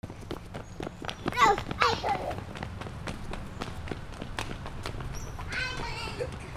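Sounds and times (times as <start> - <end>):
footsteps: 0.0 - 6.5.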